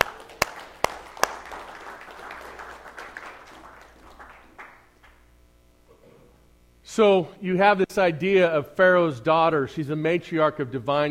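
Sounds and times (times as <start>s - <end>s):
audience clapping: 0.0s - 5.3s
speech: 7.0s - 11.1s.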